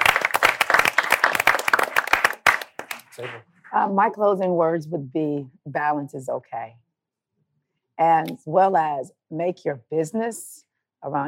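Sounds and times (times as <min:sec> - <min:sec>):
crowd applauding: 0:00.0 - 0:03.4
speech: 0:03.2 - 0:06.8, 0:08.0 - 0:11.2.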